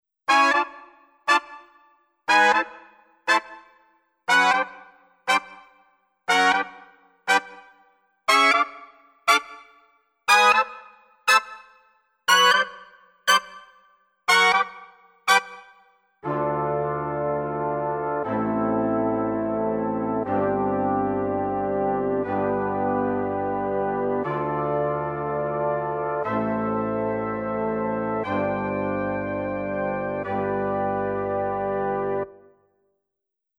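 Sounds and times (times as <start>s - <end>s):
brass instruments: 0.3s - 32.5s.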